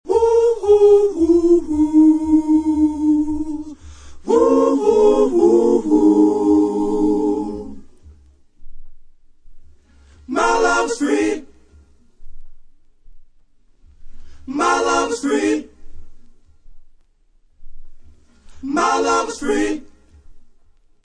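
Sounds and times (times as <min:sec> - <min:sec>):
a cappella background vocals: 0:00.0 - 0:08.2, 0:10.2 - 0:11.9, 0:14.0 - 0:16.2, 0:18.4 - 0:20.4.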